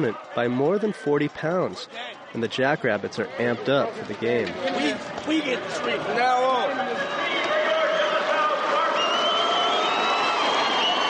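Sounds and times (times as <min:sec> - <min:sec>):
speech: 0:00.0 - 0:07.0
large crowd of football fans cheering and yelling: 0:00.0 - 0:11.0
high whoops and whistle-like cries: 0:07.3 - 0:11.0.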